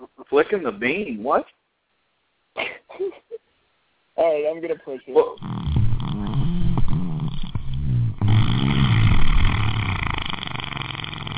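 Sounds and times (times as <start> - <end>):
speech: 0.3 - 1.6, 4.2 - 5.6
vaginal fart: 5.4 - 11.3.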